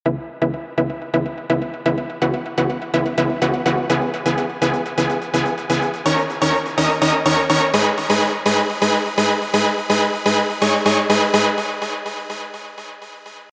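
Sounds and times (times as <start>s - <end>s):
lead melody: 0.0s - 13.4s.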